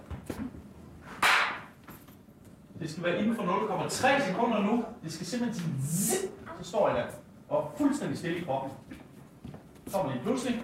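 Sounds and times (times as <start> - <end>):
hand clap: 1.2 - 1.7
speech: 2.8 - 9.0, 9.9 - 10.6.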